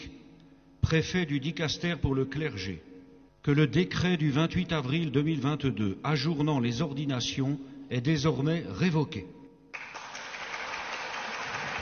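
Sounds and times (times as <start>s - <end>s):
speech: 0.9s - 9.4s
long applause: 9.7s - 11.8s.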